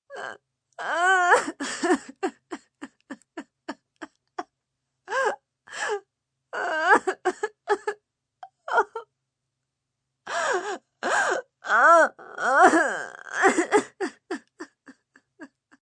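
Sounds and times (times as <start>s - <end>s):
woman crying desperately with gasps of pain: 0.8s - 3.5s, 6.6s - 8.0s, 8.7s - 9.0s, 10.3s - 15.8s.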